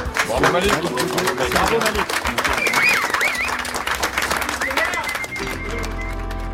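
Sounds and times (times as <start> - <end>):
audience applause: 0.0 - 6.5
people cheering and whooping: 2.3 - 6.5.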